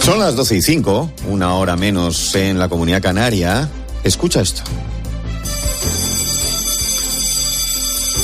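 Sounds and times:
speech: 0.1 - 4.9
school bell ringing: 5.4 - 8.2.

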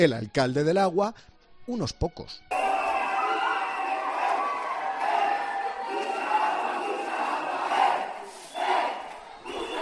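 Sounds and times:
speech: 0.0 - 2.6
crowd chanting and cheering in a crowded street: 2.5 - 9.8.

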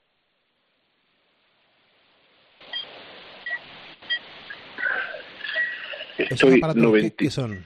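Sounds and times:
steady hiss: 0.0 - 7.6
hospital patient monitor beeping: 5.5 - 7.6
speech: 6.2 - 7.6.

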